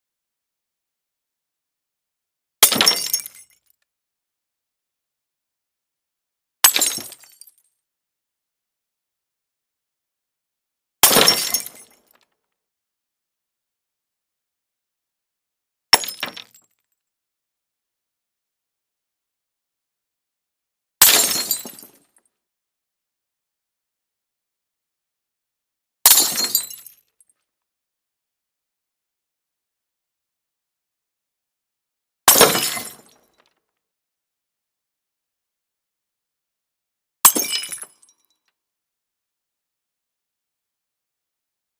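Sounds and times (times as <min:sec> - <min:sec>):
glass bottles breaking: 0:02.6 - 0:03.5, 0:06.7 - 0:07.6, 0:11.0 - 0:12.1, 0:16.0 - 0:16.6, 0:21.0 - 0:22.0, 0:26.1 - 0:27.0, 0:32.3 - 0:33.4, 0:37.3 - 0:38.0.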